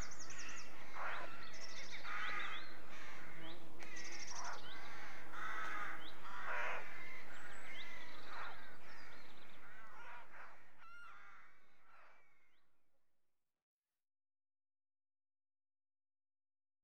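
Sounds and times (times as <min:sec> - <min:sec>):
birds at rookery nests: 0:00.0 - 0:12.6.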